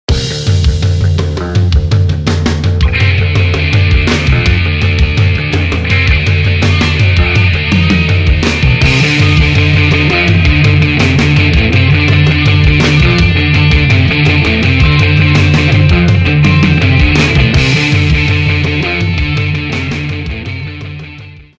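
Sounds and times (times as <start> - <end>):
acid rock groove: 0.1 - 21.5.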